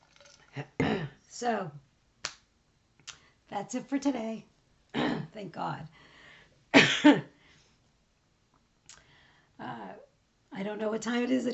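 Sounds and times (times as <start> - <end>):
throat noise: 0.7 - 1.2
person coughing after swallowing wrong: 0.8 - 1.2, 5.0 - 5.4, 6.8 - 7.3
speech: 1.4 - 1.9, 3.5 - 6.1, 6.8 - 7.3, 10.6 - 11.5.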